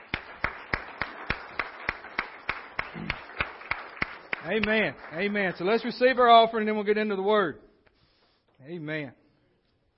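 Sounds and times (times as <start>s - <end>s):
audience clapping hands in a steady even rhythm: 0.0s - 6.9s
speech: 4.4s - 7.7s, 8.6s - 9.2s.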